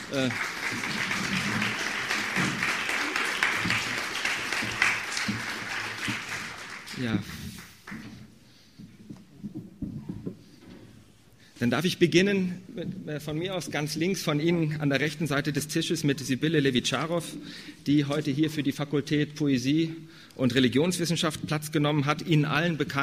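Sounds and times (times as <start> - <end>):
audience applause: 0.0 - 8.1
speech: 0.1 - 1.6, 7.0 - 7.5, 11.6 - 23.0.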